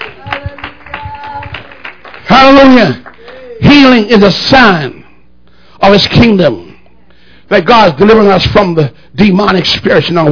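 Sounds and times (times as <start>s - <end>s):
audience clapping hands: 0.0s - 3.6s
speech: 2.4s - 5.0s, 5.8s - 6.6s, 7.5s - 10.2s.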